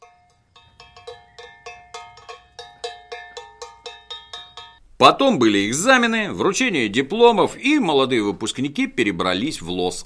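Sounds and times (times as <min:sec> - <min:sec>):
cowbell played solo: 0:00.0 - 0:04.8
speech: 0:05.0 - 0:10.0.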